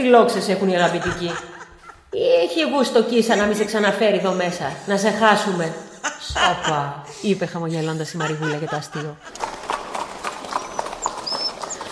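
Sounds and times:
speech: 0:00.0 - 0:01.5, 0:02.1 - 0:09.4
laughter: 0:00.6 - 0:02.2, 0:03.2 - 0:09.7
horse-drawn carriage hooves clip-clopping: 0:09.3 - 0:11.9.

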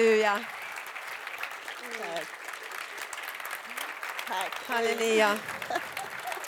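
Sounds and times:
speech: 0:00.0 - 0:00.6, 0:01.8 - 0:02.4, 0:04.3 - 0:05.9
audience giving warm applause: 0:00.0 - 0:06.4
laughter: 0:01.8 - 0:06.4.

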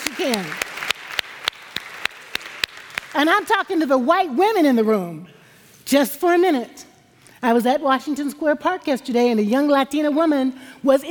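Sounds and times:
sharp hand claps: 0:00.0 - 0:03.2
speech: 0:00.2 - 0:01.1, 0:03.1 - 0:11.0.

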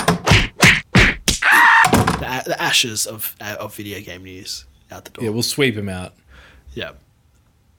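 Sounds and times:
kicking something out the door: 0:00.0 - 0:02.2
speech: 0:02.5 - 0:07.1.

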